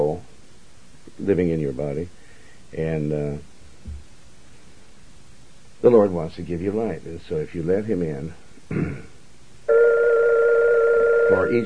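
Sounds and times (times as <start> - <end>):
speech: 1.2 - 4.0, 5.8 - 9.1, 11.3 - 11.6
telephone ringing: 9.7 - 11.6.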